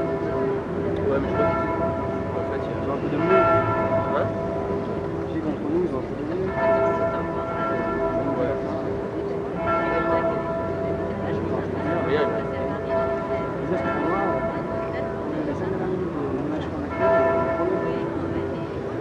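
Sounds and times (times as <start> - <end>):
bells ringing at a street arts event: 0.0 - 18.9.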